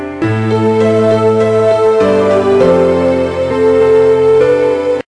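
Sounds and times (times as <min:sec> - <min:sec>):
medieval music loop: 0:00.2 - 0:05.0.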